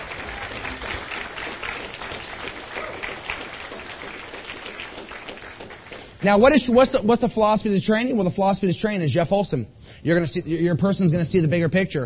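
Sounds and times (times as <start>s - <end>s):
crowd applause: 0.0s - 6.2s
speech: 6.2s - 12.0s.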